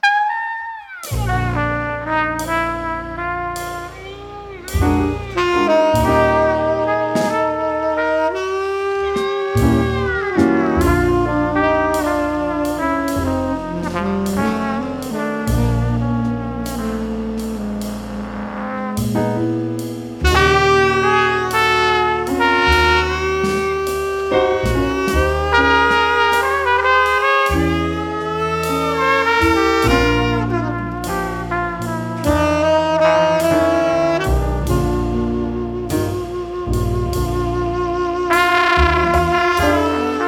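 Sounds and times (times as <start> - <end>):
quartet playing: 0.0 - 40.2.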